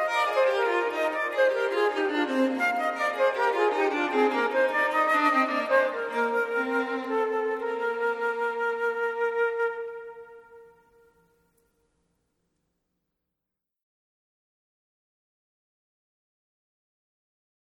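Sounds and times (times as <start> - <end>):
transverse flute: 0.0 - 11.2
violin: 0.0 - 11.2.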